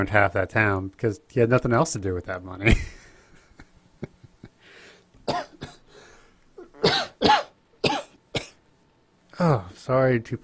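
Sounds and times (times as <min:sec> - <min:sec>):
speech: 0:00.0 - 0:03.0, 0:09.4 - 0:10.4
person coughing: 0:05.3 - 0:05.9, 0:06.6 - 0:08.6.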